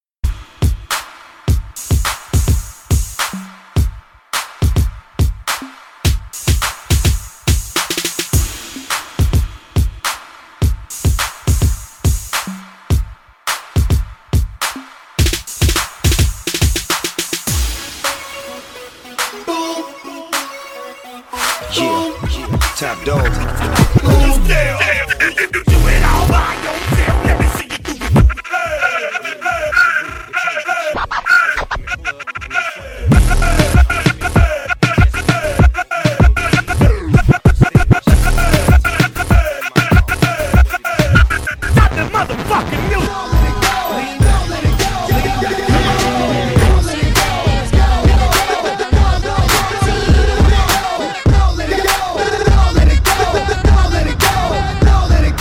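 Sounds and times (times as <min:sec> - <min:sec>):
hip hop music: 0:00.2 - 0:55.3.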